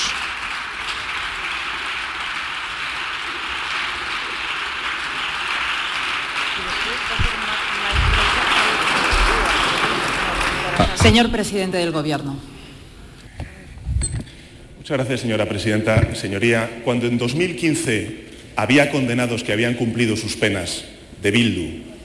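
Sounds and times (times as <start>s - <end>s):
applause in parliament chamber: 0.0s - 11.4s
speech: 11.0s - 12.5s, 14.9s - 21.8s.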